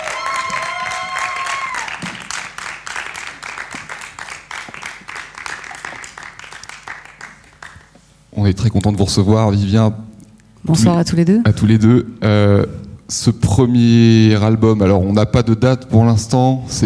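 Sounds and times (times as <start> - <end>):
live audience applause in an auditorium: 0.0 - 7.9
speech: 8.4 - 10.0, 10.6 - 16.8.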